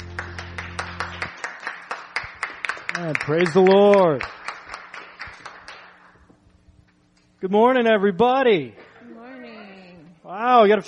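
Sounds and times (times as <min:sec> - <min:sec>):
church congregation clapping in Texas: 0:00.0 - 0:06.2
speech: 0:03.0 - 0:04.4, 0:07.4 - 0:08.8, 0:10.5 - 0:10.8.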